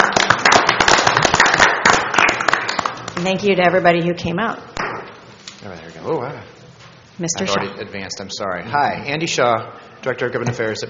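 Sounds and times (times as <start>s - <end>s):
group applause: 0.0s - 3.2s
speech: 3.2s - 4.7s, 5.6s - 6.6s, 7.2s - 10.8s.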